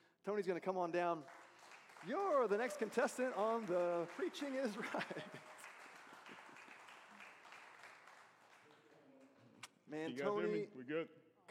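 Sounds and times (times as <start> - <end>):
speech: 0.2 - 1.4, 2.0 - 5.6, 9.9 - 11.5
audience applauding and cheering: 1.2 - 9.4
laughter: 2.1 - 6.8.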